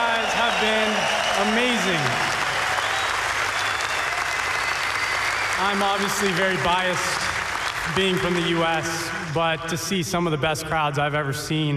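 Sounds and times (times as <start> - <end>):
crowd cheers and whistles: 0.0 - 8.5
large crowd applauding: 0.0 - 9.8
speech: 0.6 - 2.4, 5.6 - 7.2, 7.9 - 11.7.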